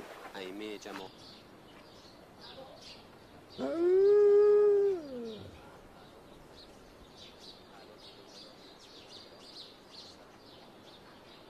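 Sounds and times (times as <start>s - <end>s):
dog howling: 3.6s - 5.6s.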